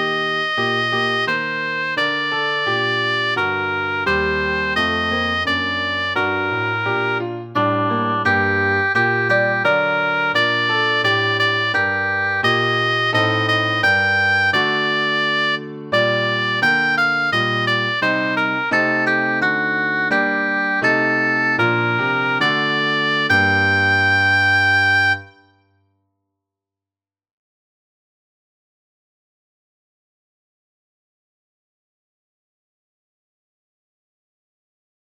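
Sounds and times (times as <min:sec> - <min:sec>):
piano: 0:00.0 - 0:25.3
oboe: 0:00.0 - 0:25.5.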